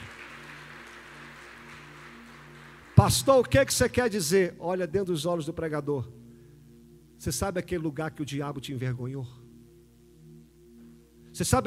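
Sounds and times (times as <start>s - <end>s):
audience clapping: 0.0s - 3.8s
speech: 3.0s - 6.2s, 7.2s - 9.4s, 11.4s - 11.6s.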